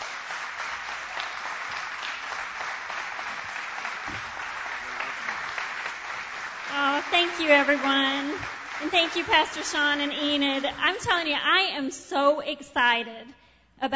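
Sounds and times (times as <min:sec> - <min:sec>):
church congregation applauding to welcome a pastor: 0:00.0 - 0:11.1
speech: 0:07.1 - 0:13.9.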